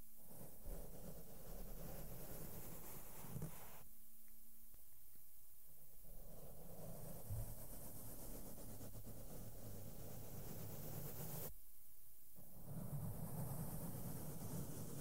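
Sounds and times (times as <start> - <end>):
soft makeup brushes sweeping over a microphone: 0.0 - 3.9, 6.0 - 11.5, 12.5 - 14.9.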